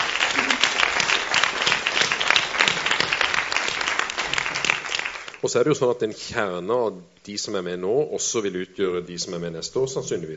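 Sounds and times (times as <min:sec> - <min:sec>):
audience applause at a staged song performance: 0:00.0 - 0:05.4
speech: 0:05.4 - 0:10.3.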